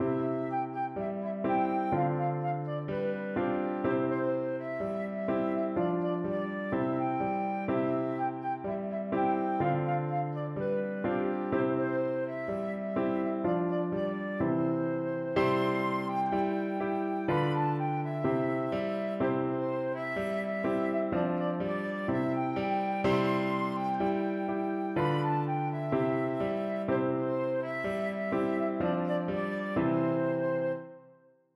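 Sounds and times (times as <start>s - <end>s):
flute: 0.0s - 31.4s.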